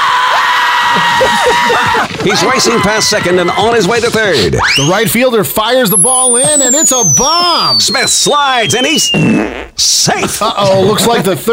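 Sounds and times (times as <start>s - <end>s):
virtual stadium crowd cheering wildly: 0.0s - 3.8s
speech: 2.0s - 11.5s.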